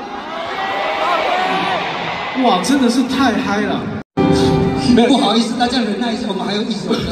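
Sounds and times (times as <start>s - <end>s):
audience applause and cheering at a live music performance: 0.1s - 3.1s
speech: 2.4s - 7.1s.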